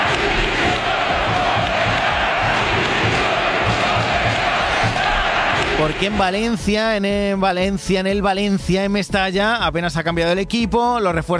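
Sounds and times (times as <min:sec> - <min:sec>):
football crowd roaring at Mestalla in Valencia during the Trofeo Naranja: 0:00.0 - 0:06.5
speech: 0:05.8 - 0:11.3.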